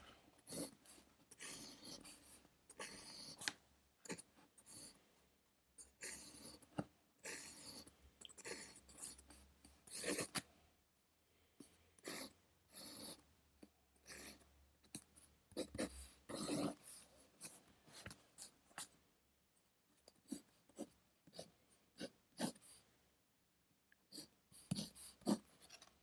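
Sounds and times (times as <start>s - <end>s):
pencil strokes on paper while studying: 0.4s - 5.0s, 5.8s - 10.4s, 11.6s - 13.3s, 14.0s - 18.9s, 20.0s - 22.9s, 24.1s - 25.8s.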